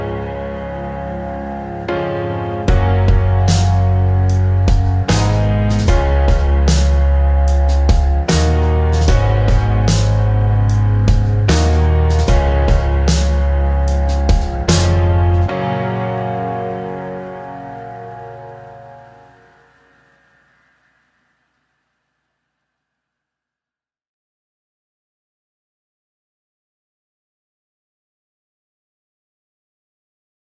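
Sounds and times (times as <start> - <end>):
instrumental music: 0.0 - 21.0.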